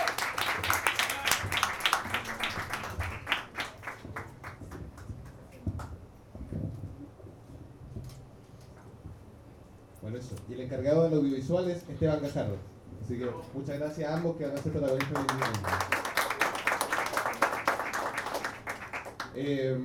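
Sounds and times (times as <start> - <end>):
audience applause at a sonorized poetry reading: 0.0 - 5.1, 14.6 - 19.4
speech: 10.6 - 15.9, 19.4 - 19.8.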